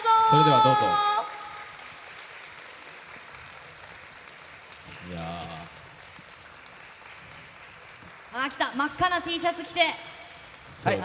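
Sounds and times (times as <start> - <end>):
applause: 0.0 - 11.0
speech: 0.3 - 1.1, 8.4 - 10.1, 10.8 - 11.0.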